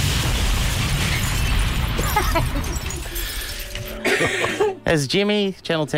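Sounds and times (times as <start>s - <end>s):
helicopter crash explosion: 0.0s - 3.6s
crackling, clattering debris: 0.0s - 4.1s
laughter: 2.0s - 2.8s, 4.0s - 4.9s
speech: 2.2s - 2.9s, 4.2s - 5.9s.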